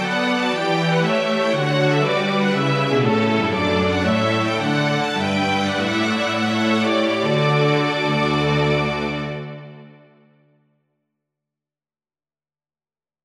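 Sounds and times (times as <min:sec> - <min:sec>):
trumpet piece: 0:00.0 - 0:10.3.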